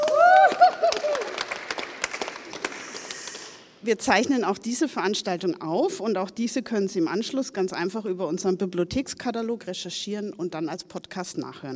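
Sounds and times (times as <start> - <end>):
audience applause: 0.0 - 3.6
speech: 3.8 - 11.7.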